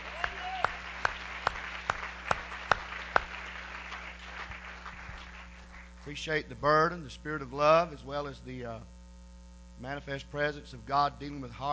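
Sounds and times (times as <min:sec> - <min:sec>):
audience applause: 0:00.0 - 0:06.0
speech: 0:06.1 - 0:09.0, 0:09.8 - 0:11.7.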